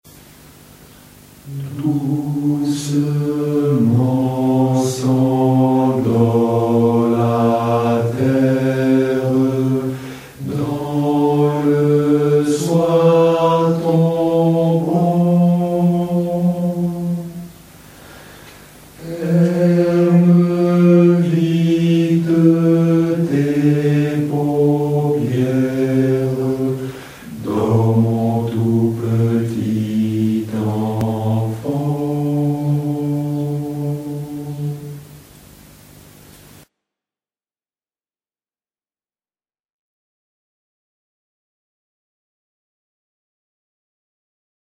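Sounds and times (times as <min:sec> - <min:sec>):
men singing a Cossack lullaby: 0:01.4 - 0:17.6, 0:19.0 - 0:35.2.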